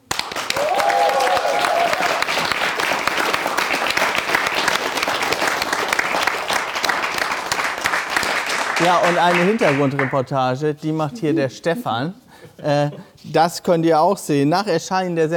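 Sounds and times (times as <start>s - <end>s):
audience clapping: 0.0s - 10.3s
speech: 8.9s - 15.3s.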